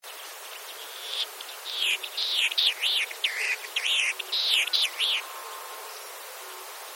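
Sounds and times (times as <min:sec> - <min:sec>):
steady background hiss: 0:00.0 - 0:06.9
Latham's snipe calling: 0:01.0 - 0:05.3.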